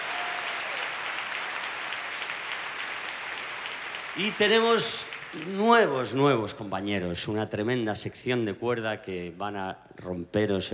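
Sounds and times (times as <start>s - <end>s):
audience applause: 0.0s - 6.2s
speech: 4.2s - 10.7s.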